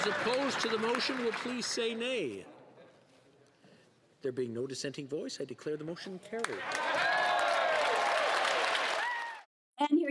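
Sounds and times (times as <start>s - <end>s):
members of parliament cheering and applauding: 0.0s - 2.1s, 6.4s - 9.5s
speech: 0.0s - 2.6s, 4.2s - 7.1s.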